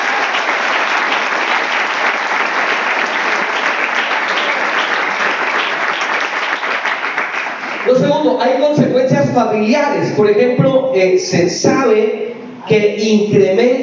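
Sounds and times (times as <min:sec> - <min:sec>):
audience applauding: 0:00.0 - 0:08.1
speech: 0:08.4 - 0:13.8.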